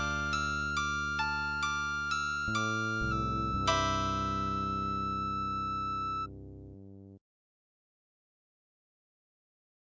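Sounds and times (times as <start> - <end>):
simple oriental tune: 0.0 - 6.7.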